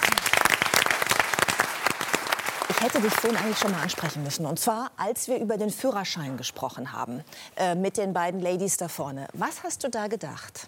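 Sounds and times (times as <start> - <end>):
audience applause: 0.0 - 4.3
speech: 2.8 - 10.6.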